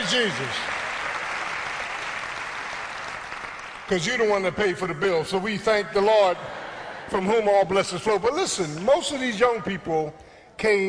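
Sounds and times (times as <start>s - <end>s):
audience clapping for parents: 0.0s - 4.6s
speech: 0.1s - 0.8s, 3.9s - 10.8s.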